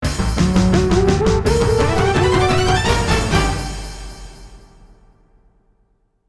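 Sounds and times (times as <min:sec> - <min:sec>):
game over jingle on MT-32: 0:00.5 - 0:03.9.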